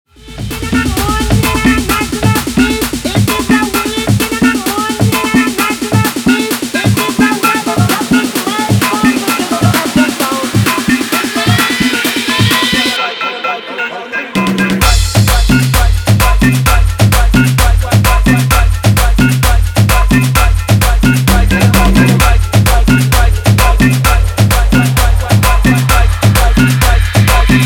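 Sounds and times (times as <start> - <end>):
guaracha remix music: 0.1 - 27.6.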